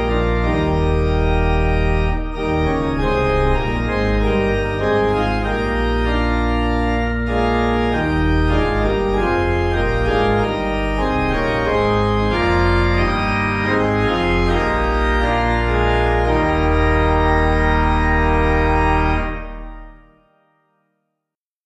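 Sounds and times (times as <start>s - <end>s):
organ playing a hymn: 0.0s - 20.3s.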